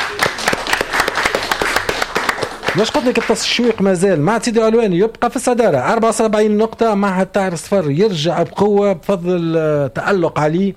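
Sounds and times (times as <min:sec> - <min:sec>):
studio audience clapping for a contestant on a quiz show: 0:00.0 - 0:04.0
speech: 0:02.8 - 0:10.7.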